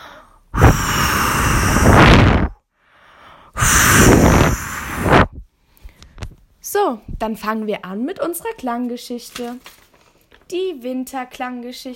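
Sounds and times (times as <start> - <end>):
person blowing air through mouth to imitate wind: 0.6 - 2.6, 3.5 - 5.4
speech: 6.7 - 9.8, 10.5 - 11.9.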